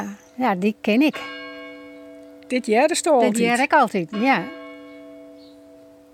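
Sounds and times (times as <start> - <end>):
speech: 0.0 - 1.4, 2.5 - 4.6
bell ringing: 1.2 - 5.9.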